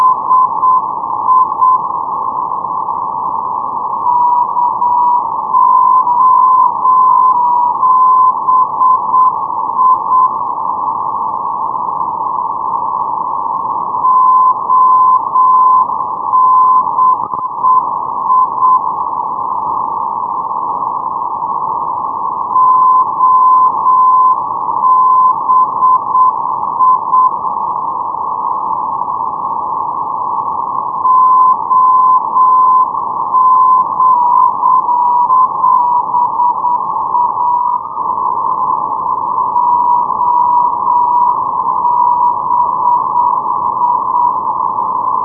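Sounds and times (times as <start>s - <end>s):
NDB non-directional radio beacon signal on 429.0: 0.0s - 45.2s.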